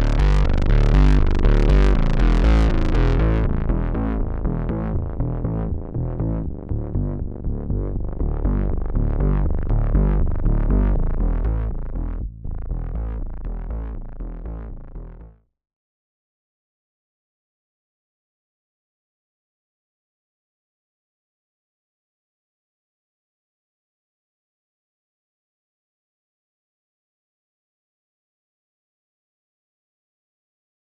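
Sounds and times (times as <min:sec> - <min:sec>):
synthesizer bass: 0:00.0 - 0:15.4.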